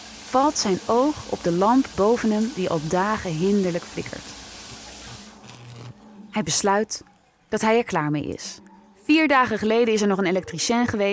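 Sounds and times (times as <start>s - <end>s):
shower water running from opened tap: 0.0s - 5.4s
speech: 0.3s - 4.3s, 6.4s - 11.1s.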